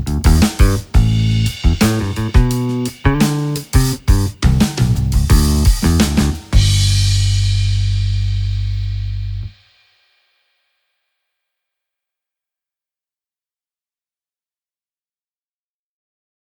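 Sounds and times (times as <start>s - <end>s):
vintage bass guitar played with a pick: 0.0s - 9.5s.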